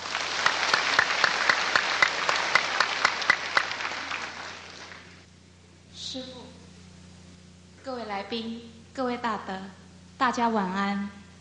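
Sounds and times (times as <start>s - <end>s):
audience applauding: 0.0s - 5.2s
speech: 6.2s - 6.4s, 7.9s - 11.2s.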